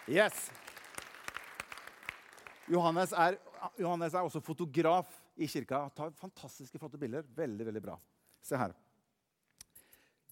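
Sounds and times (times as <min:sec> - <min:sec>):
speech: 0:00.0 - 0:00.6, 0:02.7 - 0:08.8
audience clapping: 0:00.0 - 0:03.5.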